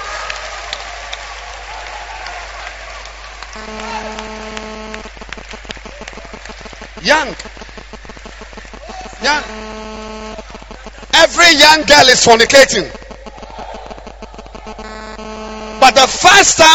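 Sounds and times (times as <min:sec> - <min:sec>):
audience clapping hands: 0:00.0 - 0:09.6
speech: 0:03.6 - 0:04.2, 0:07.0 - 0:07.5, 0:09.2 - 0:10.4, 0:11.3 - 0:13.0, 0:15.8 - 0:16.7.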